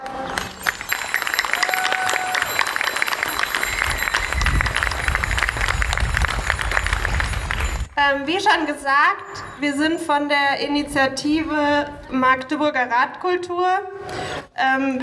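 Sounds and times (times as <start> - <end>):
audience applause: 0.0 - 7.9
whistles: 0.0 - 7.9
people calling out: 0.1 - 4.1
speech: 8.1 - 15.0.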